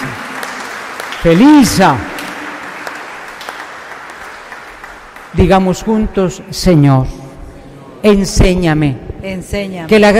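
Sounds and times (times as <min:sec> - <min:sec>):
crowd applause at a religious gathering: 0:00.0 - 0:05.9
speech: 0:01.2 - 0:02.1, 0:05.4 - 0:07.2, 0:08.0 - 0:10.1.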